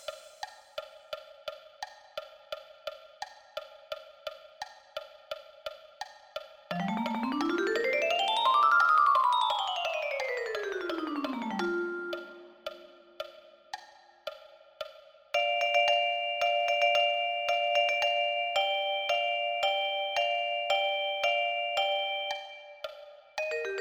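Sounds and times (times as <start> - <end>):
vibraphone: 6.7 - 13.2, 15.4 - 23.8.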